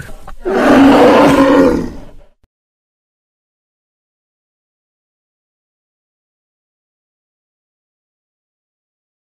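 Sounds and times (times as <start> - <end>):
brown bear roaring: 0.4 - 2.2.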